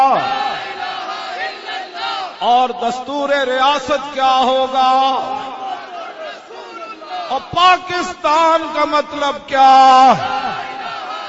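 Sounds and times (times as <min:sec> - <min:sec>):
crowd chanting a Pakistani political slogan in unison: 0:00.0 - 0:02.9, 0:04.3 - 0:08.0, 0:09.8 - 0:11.2
speech: 0:02.4 - 0:05.6, 0:07.3 - 0:10.4.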